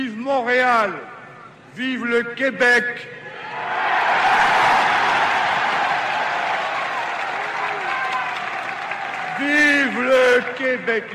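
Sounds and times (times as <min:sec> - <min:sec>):
speech: 0:00.0 - 0:01.1, 0:01.8 - 0:03.8, 0:09.4 - 0:11.1
large crowd in Montreal giving a long emotional ovation: 0:04.6 - 0:10.8.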